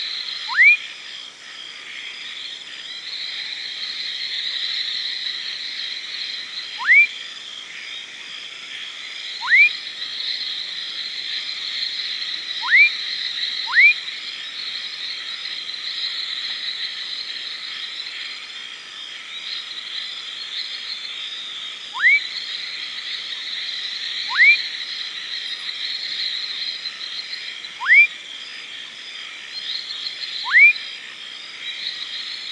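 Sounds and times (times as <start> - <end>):
insect chorus: 0.0 - 32.5
fuscous foam frog rising whistles: 0.5 - 0.8, 6.8 - 7.1, 9.4 - 9.7, 12.6 - 12.9, 13.7 - 14.0, 22.0 - 22.2, 24.3 - 24.6, 27.8 - 28.1, 30.4 - 30.8.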